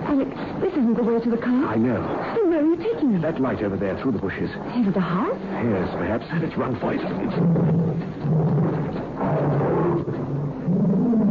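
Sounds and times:
speech: 0:00.1 - 0:08.8
pet tiger roaring: 0:07.1 - 0:11.2.

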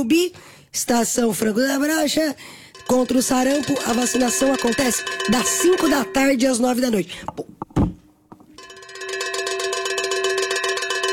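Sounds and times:
speech: 0:00.0 - 0:07.6
cowbell ringing: 0:02.7 - 0:07.0, 0:08.6 - 0:11.1.

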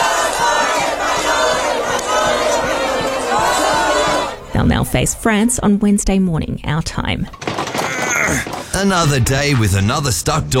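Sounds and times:
football fans erupting at a public watch party in Madrid: 0:00.0 - 0:05.2
speech: 0:04.6 - 0:07.5, 0:08.3 - 0:10.5.

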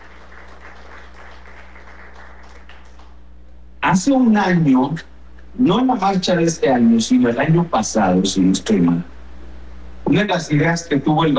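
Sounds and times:
faint church congregation applause: 0:00.0 - 0:03.3
loud constant electrical hum: 0:00.0 - 0:11.3
speech: 0:03.9 - 0:09.1, 0:10.2 - 0:11.3.

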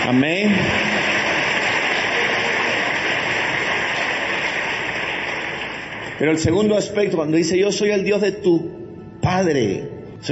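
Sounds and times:
speech: 0:00.0 - 0:01.0, 0:06.2 - 0:10.2
audience applauding: 0:00.0 - 0:06.7.

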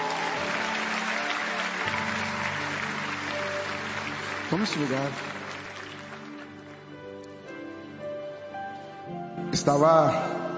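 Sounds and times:
audience applause for the team: 0:00.0 - 0:07.0
speech: 0:04.5 - 0:05.3, 0:09.6 - 0:10.4.

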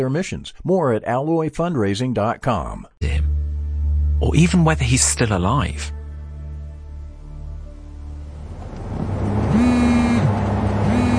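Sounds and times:
speech: 0:00.0 - 0:03.4, 0:04.2 - 0:06.0
car engine droning while driving across town: 0:07.2 - 0:11.1
thin whining tone of a car: 0:09.5 - 0:11.1.

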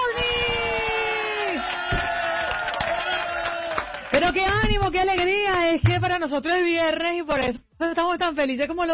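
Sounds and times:
crowd cheering and whooping: 0:00.1 - 0:04.1
clapping: 0:00.4 - 0:05.4
speech: 0:04.4 - 0:08.9.

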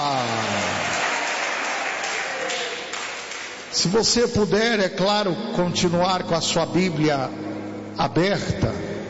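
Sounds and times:
audience applauding: 0:00.1 - 0:03.7
speech: 0:03.8 - 0:08.9.

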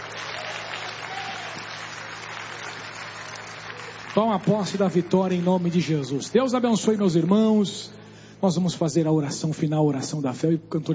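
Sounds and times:
audience applause: 0:00.0 - 0:06.6
speech: 0:04.2 - 0:10.9.

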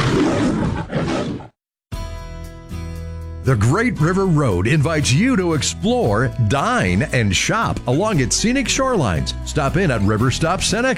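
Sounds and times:
lion roar: 0:00.0 - 0:01.6
speech: 0:03.4 - 0:10.9.

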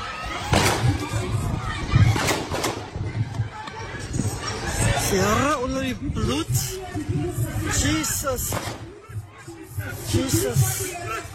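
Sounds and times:
congregants praying: 0:00.0 - 0:11.3
gunshots: 0:00.5 - 0:01.1, 0:02.1 - 0:02.9, 0:08.5 - 0:08.9
speech: 0:05.1 - 0:08.8, 0:09.9 - 0:11.3.

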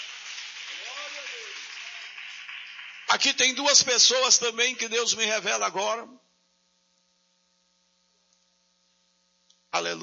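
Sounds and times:
audience applauding: 0:00.0 - 0:04.9
speech: 0:03.1 - 0:06.2, 0:09.8 - 0:10.0.

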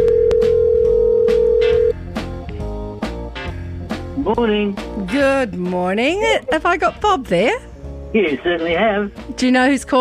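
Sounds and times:
telephone ringing: 0:00.0 - 0:02.0
speech: 0:04.3 - 0:09.9.

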